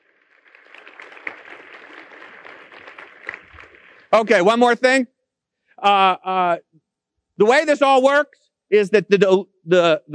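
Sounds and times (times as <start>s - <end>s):
audience applause: 0.0s - 4.6s
speech: 4.1s - 5.1s, 5.8s - 6.7s, 7.4s - 10.1s.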